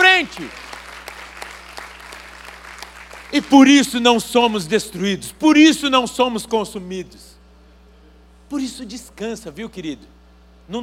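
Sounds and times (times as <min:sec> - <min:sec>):
audience applauding: 0:00.0 - 0:04.0
speech: 0:00.4 - 0:00.7, 0:03.3 - 0:07.4, 0:08.5 - 0:10.8.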